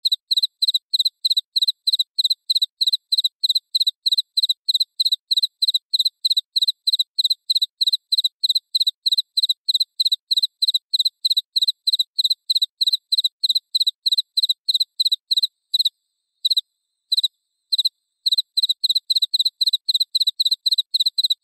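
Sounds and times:
cricket chirping: 0:00.0 - 0:21.4.

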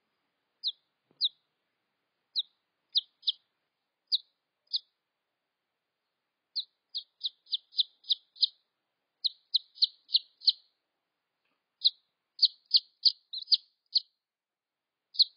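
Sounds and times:
red junglefowl chick peeps: 0:00.6 - 0:01.4, 0:02.3 - 0:03.4, 0:04.1 - 0:04.9, 0:06.6 - 0:08.6, 0:09.2 - 0:10.7, 0:11.8 - 0:14.1, 0:15.1 - 0:15.3.

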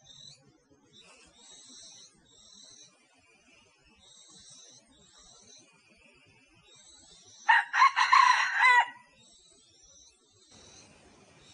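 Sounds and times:
rooster calling: 0:07.5 - 0:09.0.

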